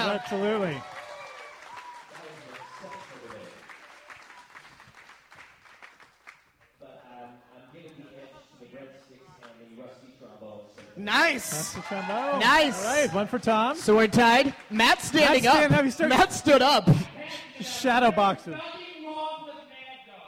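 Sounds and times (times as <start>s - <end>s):
round of applause: 0.0s - 6.8s, 11.3s - 15.7s
speech: 0.2s - 1.0s, 11.0s - 18.8s.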